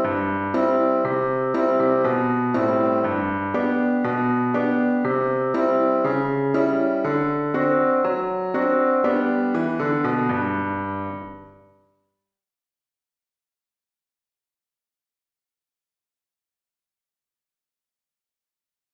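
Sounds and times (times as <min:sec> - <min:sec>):
solo piano: 0:00.0 - 0:11.8.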